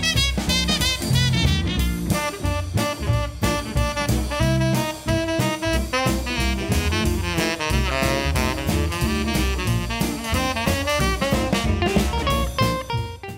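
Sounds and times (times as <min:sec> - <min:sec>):
jazz saxophone: 0:00.0 - 0:13.3.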